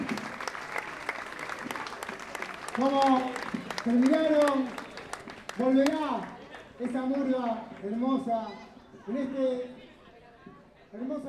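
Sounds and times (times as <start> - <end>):
audience applause: 0.0 - 6.8
speech: 2.8 - 4.8, 5.6 - 9.8, 10.9 - 11.2.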